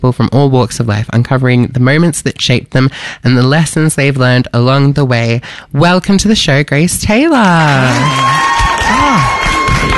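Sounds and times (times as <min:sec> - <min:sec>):
speech: 0:00.0 - 0:08.4
excited whoops and high shouted voices: 0:07.6 - 0:09.9
live studio audience cheering: 0:07.6 - 0:09.9.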